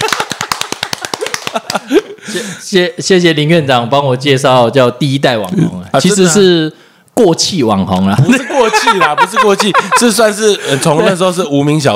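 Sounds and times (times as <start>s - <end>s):
crowd clapping: 0.0s - 2.0s
laughter: 0.0s - 2.4s, 8.2s - 11.2s
speech: 1.5s - 11.9s.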